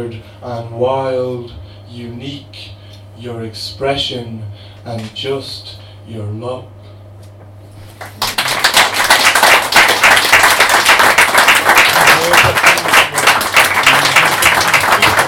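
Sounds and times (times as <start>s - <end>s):
speech: 0.0s - 6.8s, 12.2s - 12.6s
faint low hum: 0.0s - 15.2s
audience applause: 8.0s - 15.2s.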